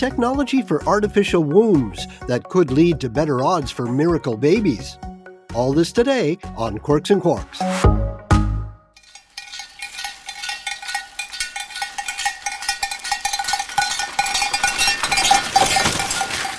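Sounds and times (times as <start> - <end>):
speech: 0.0 - 8.0
bells on a reindeer-drawn sleigh in Finland jingling: 9.0 - 16.5.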